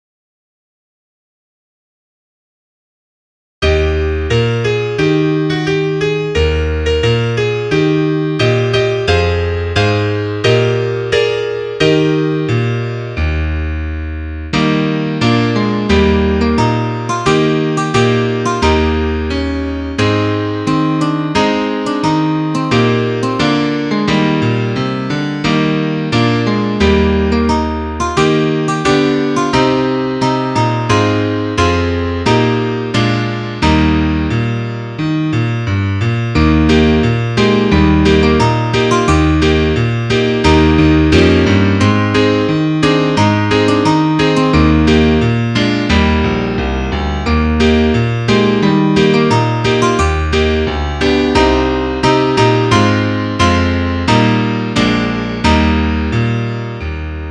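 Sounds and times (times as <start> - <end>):
solo piano: 3.6 - 57.2.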